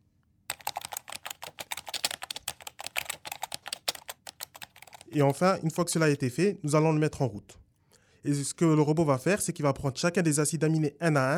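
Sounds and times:
keyboard typing: 0.5s - 5.6s
speech: 5.1s - 7.6s, 8.2s - 11.3s.

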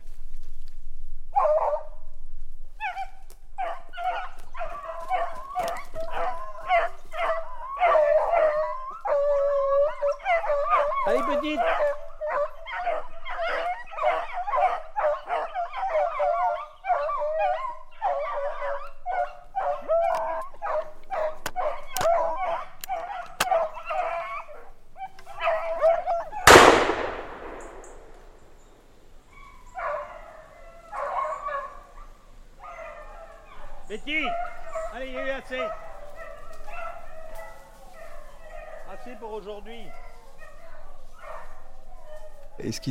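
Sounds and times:
hunting dog barking and howling: 1.3s - 2.0s, 2.7s - 28.0s, 29.3s - 42.8s.

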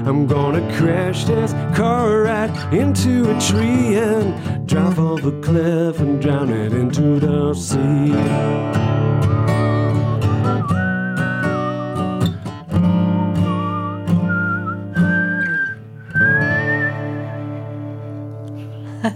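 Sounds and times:
speech: 0.0s - 9.4s
strummed instrumental accompaniment: 0.0s - 19.1s
lip whistling a tune: 9.4s - 12.3s, 12.9s - 17.8s.

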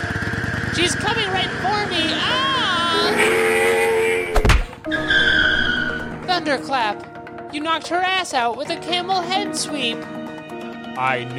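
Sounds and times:
motorcycles circling and skidding: 0.0s - 6.2s
speech: 0.8s - 3.4s, 6.4s - 10.2s, 11.0s - 11.3s.

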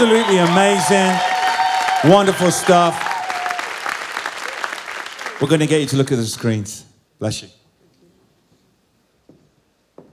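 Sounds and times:
speech: 0.0s - 1.3s, 2.0s - 3.1s, 5.4s - 7.6s
audience clapping: 0.0s - 6.2s.

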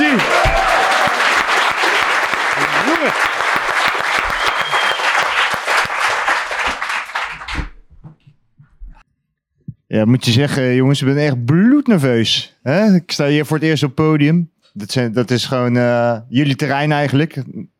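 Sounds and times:
loud audience applause: 0.0s - 7.8s
speech: 10.0s - 17.7s.

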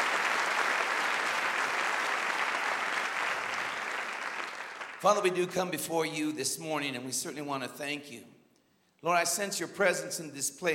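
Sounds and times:
audience applause: 0.0s - 5.3s
speech: 5.0s - 8.4s, 9.0s - 10.7s.

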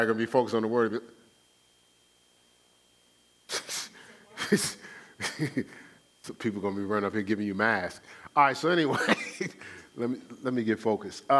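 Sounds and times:
speech: 0.0s - 1.2s, 4.5s - 11.3s
person coughing: 3.5s - 5.7s, 8.9s - 9.8s.

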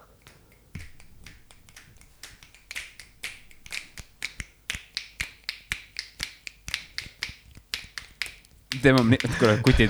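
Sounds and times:
rhythmic finger snapping: 0.0s - 9.8s
laughter: 8.8s - 9.8s
speech: 8.8s - 9.8s.

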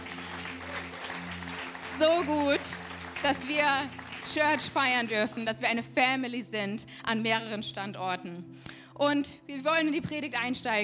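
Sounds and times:
applause: 0.0s - 5.5s
speech: 2.0s - 10.8s.

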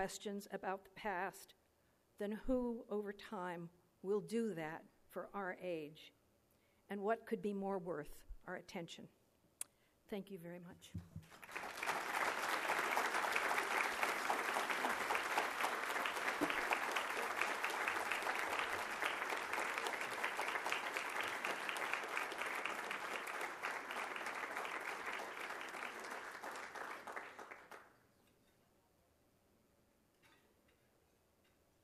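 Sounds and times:
speech: 0.0s - 1.6s, 2.2s - 6.2s, 6.9s - 9.2s, 10.1s - 11.6s
audience applause: 11.2s - 27.9s.

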